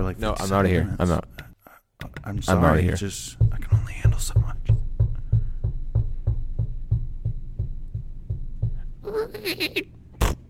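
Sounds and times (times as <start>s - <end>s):
speech: 0.0s - 1.4s, 2.2s - 4.5s, 9.3s - 10.0s
rapid low thumps on door: 2.8s - 9.0s.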